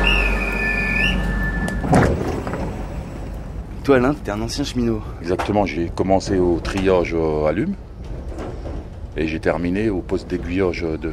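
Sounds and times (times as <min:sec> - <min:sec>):
thin sustained high squeal of a train: 0:00.0 - 0:02.4
train on the Meuse valley line rumbling at the platform: 0:00.0 - 0:11.1
speech: 0:03.9 - 0:07.9, 0:09.2 - 0:11.1.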